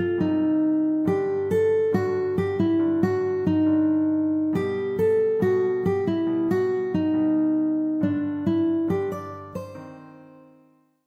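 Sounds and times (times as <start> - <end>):
guitar: 0.0 - 11.0.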